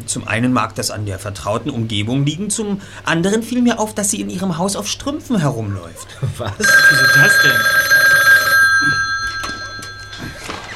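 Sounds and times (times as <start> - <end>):
speech: 0.1 - 7.9
telephone ringing with an incoming call: 6.6 - 10.7.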